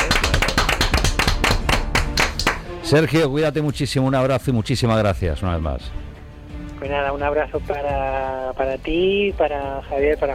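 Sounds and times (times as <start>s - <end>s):
ovation of loud clapping for a guest on a show: 0.0s - 2.7s
speech: 2.9s - 6.2s, 6.8s - 10.3s.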